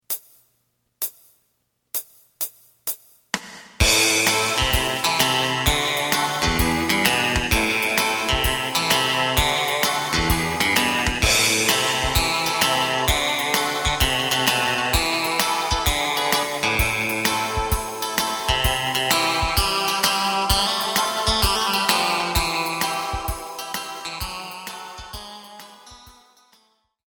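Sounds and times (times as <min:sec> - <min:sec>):
bass: 0:03.8 - 0:23.1.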